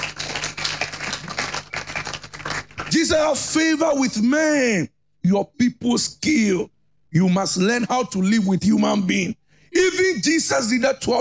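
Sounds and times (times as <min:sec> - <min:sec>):
person clapping during a sermon: 0:00.0 - 0:03.0
speech: 0:02.9 - 0:11.1.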